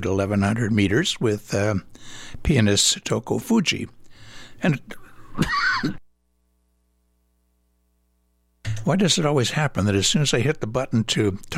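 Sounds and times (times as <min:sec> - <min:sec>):
speech: 0:00.0 - 0:04.0, 0:04.6 - 0:06.0, 0:08.8 - 0:11.5
person coughing: 0:05.0 - 0:06.1.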